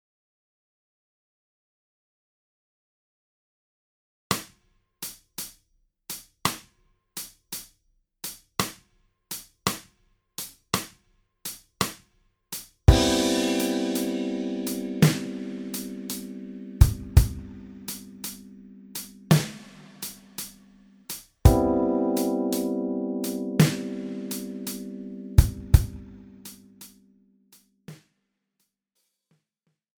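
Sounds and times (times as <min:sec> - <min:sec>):
12/8 blues: 0:12.9 - 0:20.5, 0:21.5 - 0:26.9.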